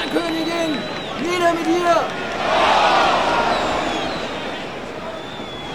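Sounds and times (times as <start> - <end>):
speech: 0.2 - 2.7
angry crowd shouting in the street: 1.9 - 4.7.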